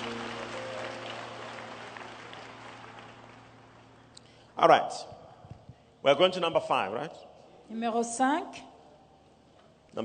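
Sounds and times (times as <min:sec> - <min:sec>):
audience applauding: 0:00.0 - 0:04.1
speech: 0:04.6 - 0:05.2, 0:06.0 - 0:08.7.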